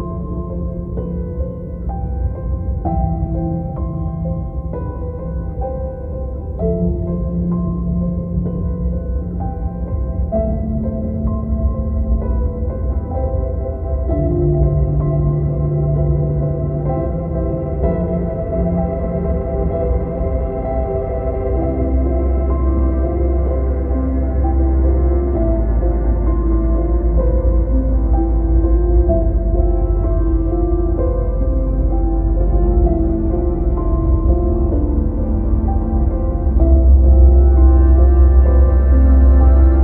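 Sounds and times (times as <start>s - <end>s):
background music bed: 0.0s - 39.8s.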